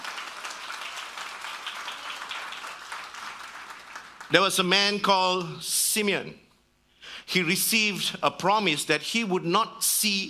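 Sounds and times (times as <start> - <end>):
audience clapping: 0.0 - 4.8
speech: 4.3 - 6.5, 7.3 - 10.2.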